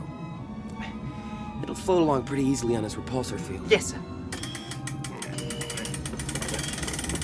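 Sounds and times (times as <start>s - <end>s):
speech: 1.8s - 4.2s
heavy door being raised manually: 4.4s - 7.2s.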